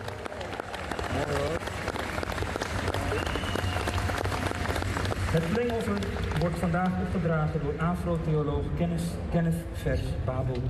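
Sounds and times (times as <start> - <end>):
audience in Amsterdam applauding a woman being honoured: 0.0 - 7.6
speech: 1.2 - 1.7, 5.4 - 10.6.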